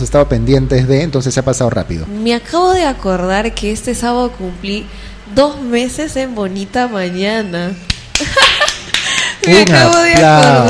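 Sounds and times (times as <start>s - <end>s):
speech: 0.0s - 8.4s, 9.4s - 10.6s
crowd applause: 8.2s - 10.6s.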